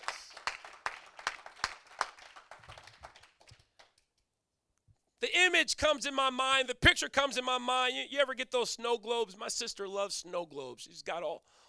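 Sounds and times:
audience clapping hands: 0:00.0 - 0:04.2
speech: 0:05.2 - 0:11.6.

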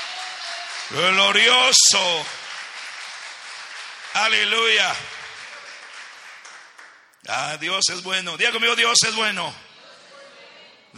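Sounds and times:
crowd applauding: 0:00.0 - 0:07.2
speech: 0:00.9 - 0:02.4, 0:04.2 - 0:05.2, 0:07.2 - 0:09.7.

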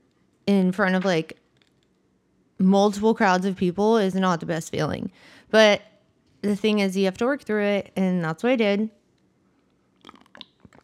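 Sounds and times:
speech: 0:00.5 - 0:01.4, 0:02.6 - 0:09.0
person sipping water: 0:10.0 - 0:10.8.

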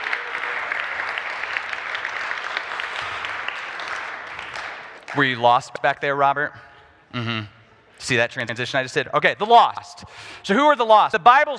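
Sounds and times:
audience applause: 0:00.0 - 0:05.3
speech: 0:05.1 - 0:11.5.

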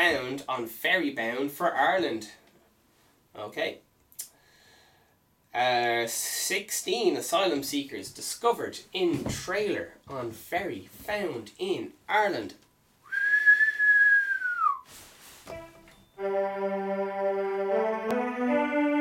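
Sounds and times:
speech: 0:00.1 - 0:02.4, 0:03.4 - 0:04.3, 0:05.5 - 0:12.6, 0:16.2 - 0:18.9
whistled tune in the style of an old Irish traditional song: 0:13.1 - 0:14.9, 0:15.5 - 0:16.2.

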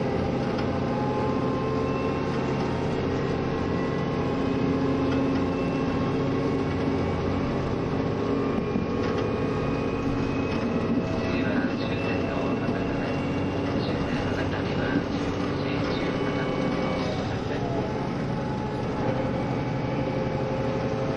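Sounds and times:
KiHa 72 Yufuin no Mori train running rumble and engine drone: 0:00.0 - 0:21.1.

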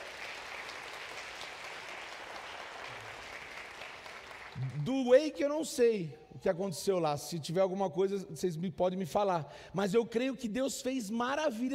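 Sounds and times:
audience applauding: 0:00.0 - 0:04.9
speech: 0:04.6 - 0:11.7.

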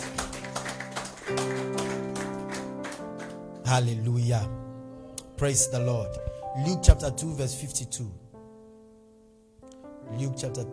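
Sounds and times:
audience clapping: 0:00.0 - 0:03.7
sustained keyboard chords: 0:00.0 - 0:10.7
speech: 0:03.7 - 0:04.6, 0:05.4 - 0:08.2, 0:10.1 - 0:10.7.

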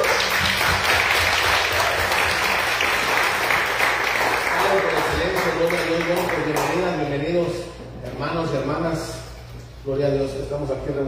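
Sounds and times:
audience applause: 0:00.0 - 0:06.7
speech: 0:08.3 - 0:09.2, 0:09.8 - 0:11.0.

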